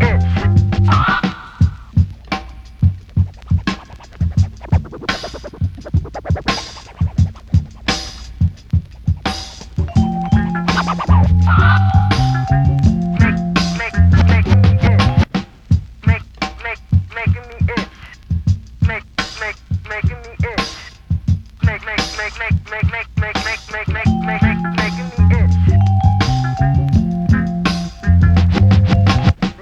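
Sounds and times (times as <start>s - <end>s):
drums: 0.0s - 29.5s
itchy vibraphone: 9.9s - 15.1s, 24.1s - 29.4s.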